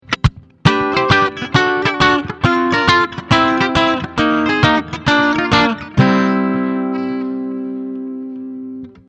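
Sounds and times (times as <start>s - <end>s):
clean amplifier tone: 0.0s - 9.0s.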